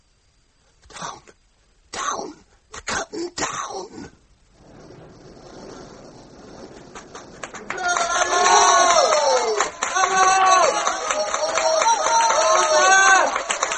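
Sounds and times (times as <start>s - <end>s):
theatre audience applauding: 5.6s - 13.7s
theatre audience shouting: 7.5s - 13.7s.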